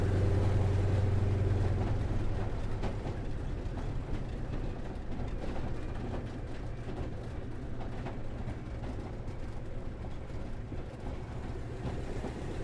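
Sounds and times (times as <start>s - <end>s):
CA-28 Ceres aircraft taxiing heard from the interior: 0.0s - 12.6s.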